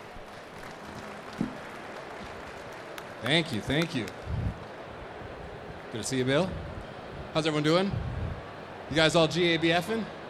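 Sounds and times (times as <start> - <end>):
audience round of applause: 0.0 - 6.8
speech: 3.2 - 4.4, 5.9 - 6.7, 7.3 - 8.1, 8.9 - 10.2.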